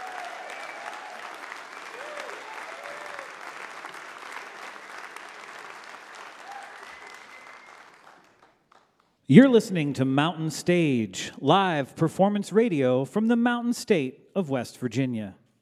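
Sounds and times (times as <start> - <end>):
audience applause: 0.0 - 9.1
speech: 9.3 - 15.4.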